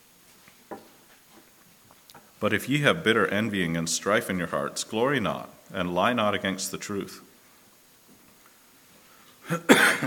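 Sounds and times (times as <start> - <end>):
speech: 2.4 - 7.3, 9.5 - 10.0
cough from a tickle in the throat: 9.4 - 10.0.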